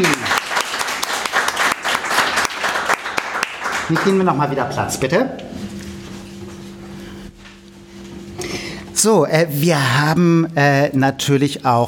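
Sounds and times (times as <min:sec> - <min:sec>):
audience applause: 0:00.0 - 0:04.4
speech: 0:03.9 - 0:05.7, 0:09.0 - 0:11.8.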